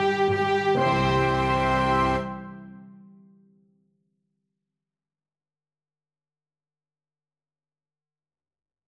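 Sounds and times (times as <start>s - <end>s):
orchestral song: 0.0s - 3.3s.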